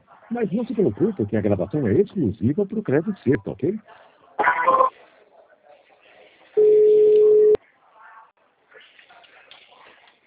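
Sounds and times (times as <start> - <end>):
speech: 0.3 - 4.0
telephone tone while a call is transferred: 4.5 - 4.9, 6.6 - 7.6.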